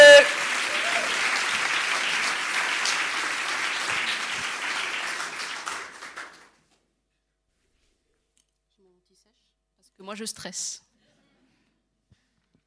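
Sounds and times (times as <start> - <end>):
audience applause: 0.0 - 6.6
speech: 10.1 - 10.8.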